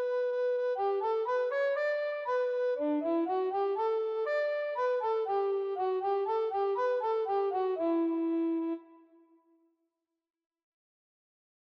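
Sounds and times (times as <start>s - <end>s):
tenor recorder: 0.0s - 9.2s.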